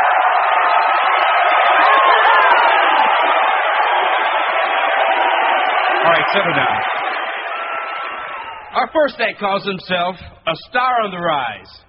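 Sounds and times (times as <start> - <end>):
audience cheering and whooping at a high school winter talent show: 0.0 - 8.9
speech: 6.3 - 7.0, 8.8 - 11.8.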